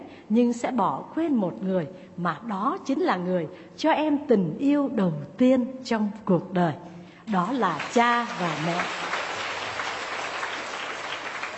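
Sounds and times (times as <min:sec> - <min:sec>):
speech: 0:00.3 - 0:09.1
students in a classroom clapping: 0:07.3 - 0:11.5.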